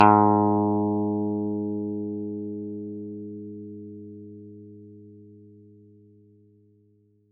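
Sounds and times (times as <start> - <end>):
bass guitar single G and A notes: 0.0 - 5.7.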